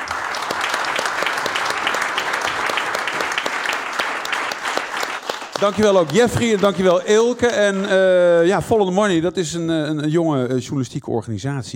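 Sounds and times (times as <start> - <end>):
audience applause: 0.0 - 8.5
speech: 5.6 - 11.7.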